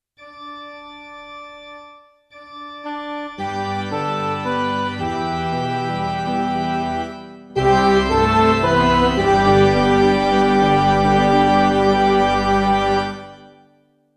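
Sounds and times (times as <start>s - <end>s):
MIDI mass music: 2.8s - 13.6s.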